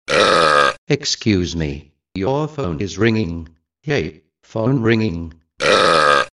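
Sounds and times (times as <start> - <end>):
person burping: 0.1 - 0.8, 5.6 - 6.3
person saying excuse me: 0.9 - 5.4.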